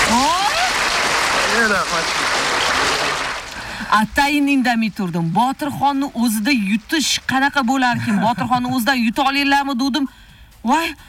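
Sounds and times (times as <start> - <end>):
people shouting and cheering: 0.0 - 0.9
audience applause on a quiz show after a correct answer: 0.0 - 3.8
speech: 1.6 - 2.5, 3.9 - 11.0.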